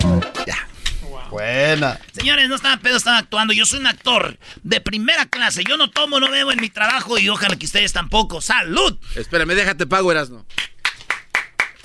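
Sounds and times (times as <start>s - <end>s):
speech: 1.4s - 10.7s
clapping: 5.3s - 7.6s, 10.6s - 11.8s.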